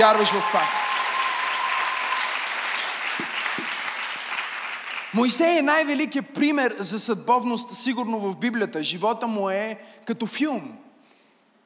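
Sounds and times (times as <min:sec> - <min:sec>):
speech: 0:00.0 - 0:00.8, 0:05.2 - 0:10.8
audience applause: 0:00.0 - 0:05.2.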